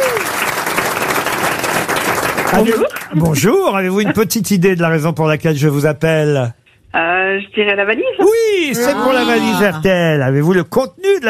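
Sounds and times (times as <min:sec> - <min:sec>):
studio audience clapping for a phone-in caller: 0:00.0 - 0:03.5
speech: 0:02.5 - 0:11.2.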